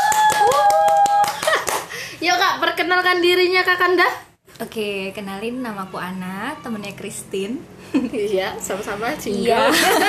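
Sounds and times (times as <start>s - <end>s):
hand clapping: 0.0s - 2.0s
speech: 2.7s - 10.0s
laughter: 9.6s - 10.0s.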